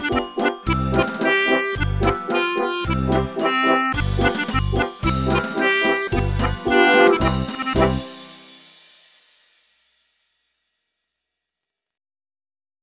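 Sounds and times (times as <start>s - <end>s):
military march: 0.0s - 8.4s.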